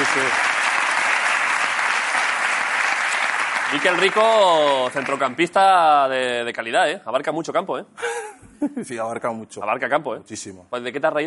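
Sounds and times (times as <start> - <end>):
audience applause: 0.0 - 5.4
speech: 3.7 - 11.2.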